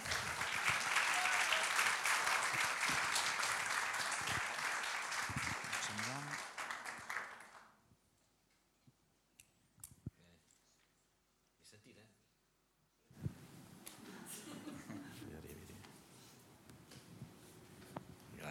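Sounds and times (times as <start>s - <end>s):
audience applause welcoming guests: 0.0s - 7.8s
laughter: 14.1s - 15.4s.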